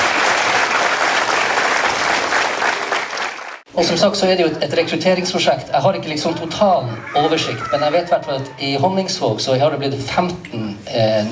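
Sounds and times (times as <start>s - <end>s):
audience applause: 0.0s - 3.6s
speech: 3.8s - 11.3s.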